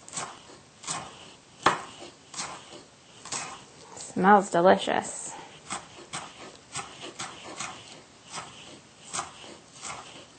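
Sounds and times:
knife dicing food on a cutting board: 0.1 - 3.6, 5.6 - 10.3
speech: 4.2 - 5.2.

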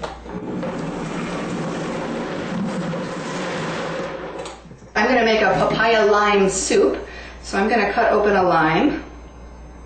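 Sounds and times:
blender running: 0.2 - 4.6
speech: 5.0 - 9.1.

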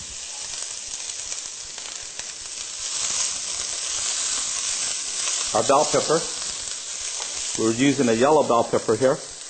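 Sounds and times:
garlic sizzling in a hot pan: 0.0 - 9.4
speech: 5.5 - 6.4, 7.6 - 9.3.

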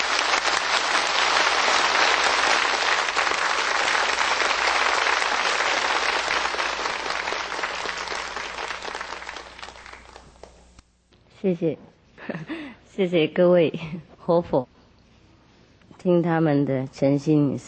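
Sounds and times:
warm audience applause: 0.0 - 10.6
speech: 11.5 - 11.8, 13.0 - 14.7, 16.0 - 17.6.

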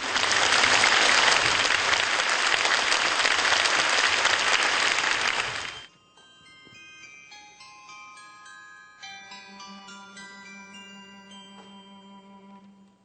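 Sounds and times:
audience applause: 0.0 - 5.9.

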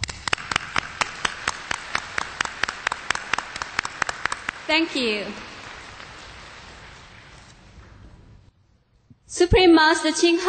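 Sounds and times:
audience applause: 0.0 - 7.6
speech: 4.7 - 5.5, 9.4 - 10.4.

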